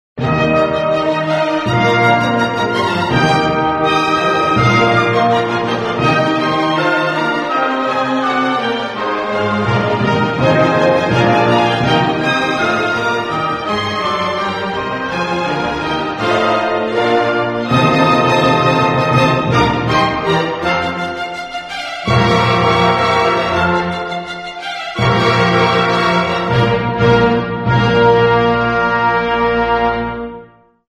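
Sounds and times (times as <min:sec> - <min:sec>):
opera music: 0:00.2 - 0:30.8.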